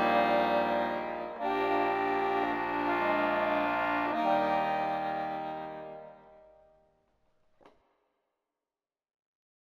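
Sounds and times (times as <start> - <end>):
accordion arrangement of a New Year song: 0.0 - 6.6.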